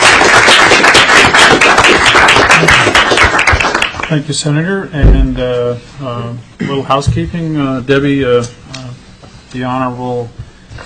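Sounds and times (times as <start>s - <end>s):
crowd applauding: 0.0s - 4.2s
speech: 4.1s - 8.6s, 9.5s - 10.8s.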